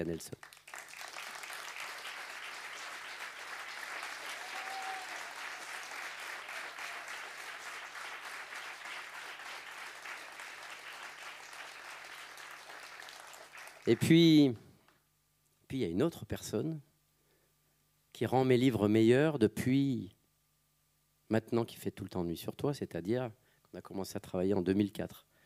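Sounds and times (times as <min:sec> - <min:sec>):
speech: 0:00.0 - 0:00.6, 0:13.9 - 0:14.6, 0:15.7 - 0:16.9, 0:18.2 - 0:20.2, 0:21.3 - 0:25.3
audience applause: 0:00.4 - 0:14.1.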